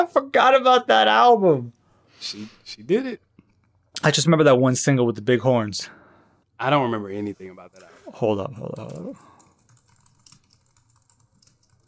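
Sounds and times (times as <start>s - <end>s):
speech: 0.0s - 3.3s, 4.0s - 6.0s, 6.6s - 9.3s
computer keyboard typing: 8.6s - 11.8s.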